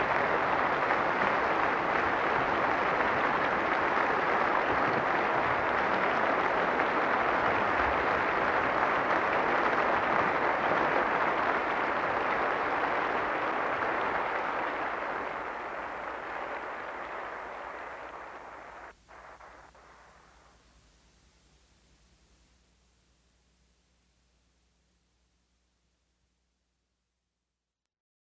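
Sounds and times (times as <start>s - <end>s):
applause: 0.0s - 20.4s.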